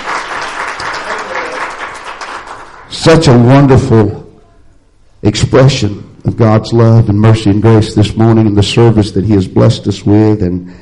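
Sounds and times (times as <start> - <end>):
church congregation clapping in praise during a worship service: 0.0 - 3.4
speech: 3.1 - 4.2, 5.2 - 10.7.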